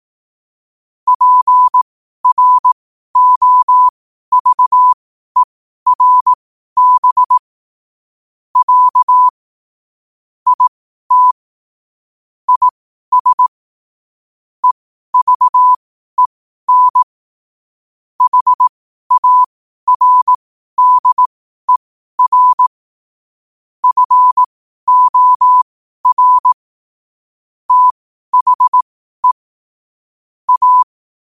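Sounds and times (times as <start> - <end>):
morse code at 5 wpm: 1.1 - 7.4, 8.6 - 9.3, 10.5 - 11.4, 12.5 - 13.5, 14.6 - 17.1, 18.2 - 22.7, 23.8 - 26.6, 27.7 - 29.4, 30.5 - 31.2.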